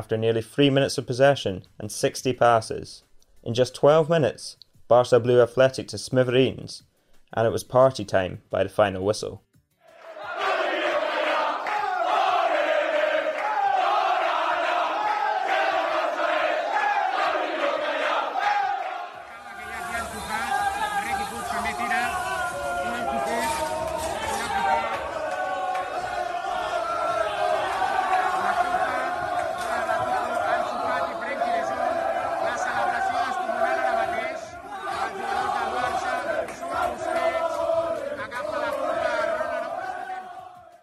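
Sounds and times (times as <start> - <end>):
speech: 0.0 - 9.4
football squad chanting and singing in a dressing room: 9.8 - 40.8.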